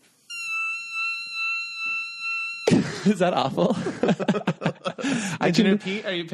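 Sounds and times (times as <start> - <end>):
high whistle-register sung note: 0.3 - 2.8
laughter: 2.7 - 6.3
speech: 3.0 - 6.3.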